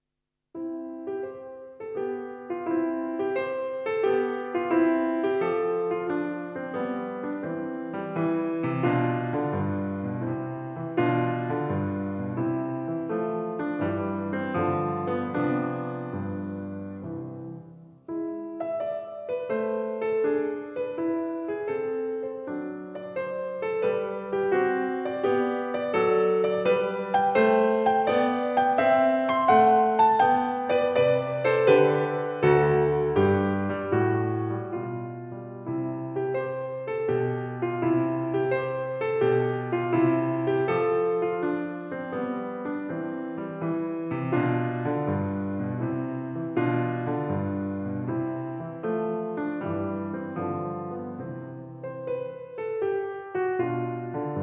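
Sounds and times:
piano sonatina: 0.5 - 54.4.

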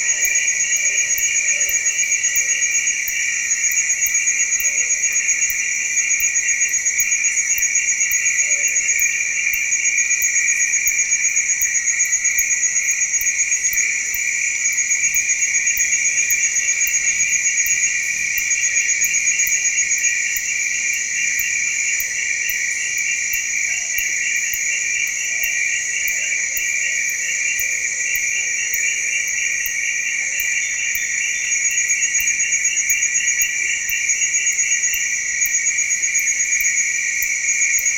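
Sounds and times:
ambience deep in a rainforest: 0.0 - 37.9.

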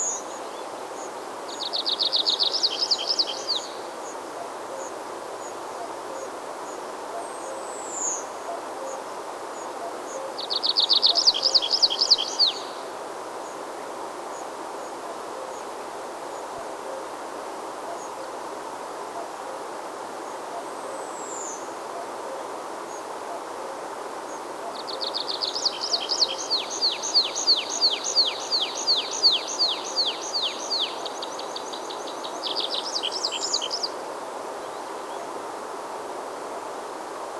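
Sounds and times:
morning nature sounds in the mountains: 0.0 - 37.3.

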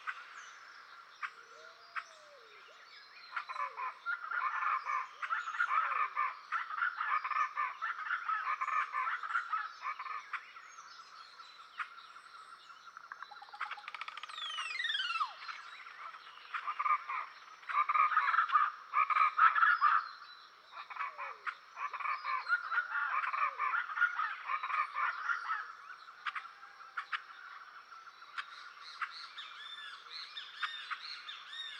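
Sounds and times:
rainforest songbirds singing: 0.0 - 31.7.

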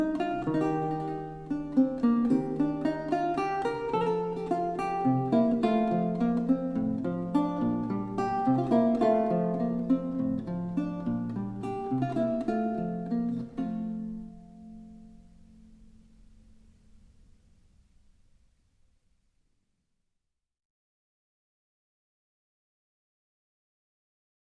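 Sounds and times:
lute piece: 0.0 - 18.2.

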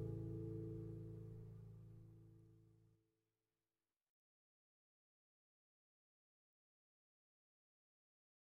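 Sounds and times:
slow guitar piece: 0.0 - 2.0.

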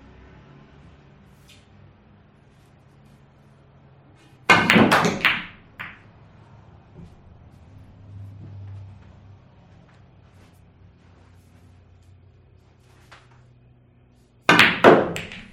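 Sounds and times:
pool game: 4.5 - 6.1, 14.5 - 15.5.

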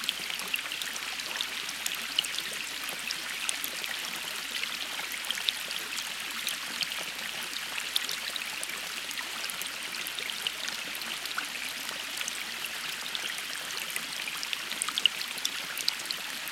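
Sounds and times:
rain: 0.0 - 16.5.

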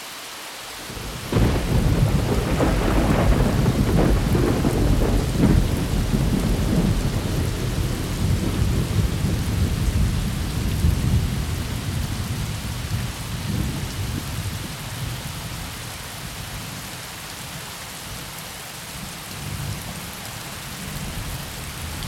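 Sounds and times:
thunderstorm: 0.9 - 15.7.

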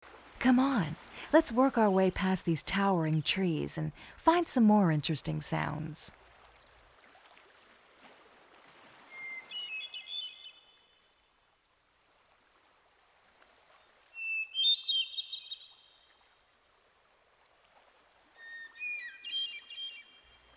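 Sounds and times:
speech: 0.4 - 6.2
clear flute-like bird song in forest: 9.1 - 10.8, 14.2 - 15.9, 18.4 - 20.4.

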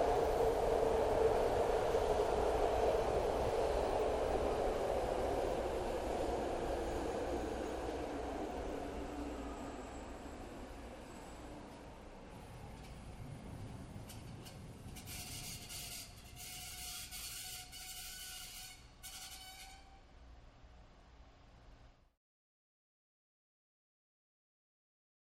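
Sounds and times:
SEPTA train starting, moving away and stopping, heard from the interior: 0.0 - 20.2.

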